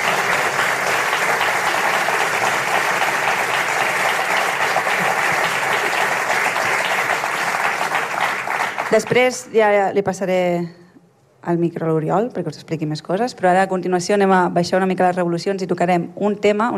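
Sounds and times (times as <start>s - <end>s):
audience applause: 0.0s - 9.3s
speech: 8.9s - 10.8s, 11.4s - 16.7s.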